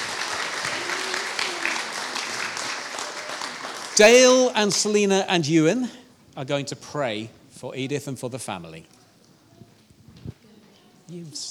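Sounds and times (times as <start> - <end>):
audience applause: 0.0 - 5.2
speech: 4.0 - 9.0, 11.1 - 11.4.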